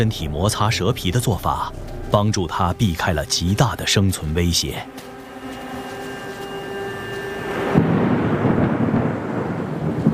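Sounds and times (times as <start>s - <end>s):
speech: 0.0s - 5.1s
thunder of an approaching rainstorm: 7.5s - 10.1s.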